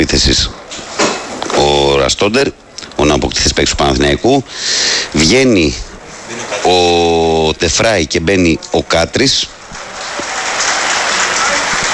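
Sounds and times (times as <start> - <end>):
speech: 0.0 - 0.6, 1.6 - 5.8, 6.5 - 9.6
Panathinaikos football crowd applauding a substitution: 9.8 - 11.9.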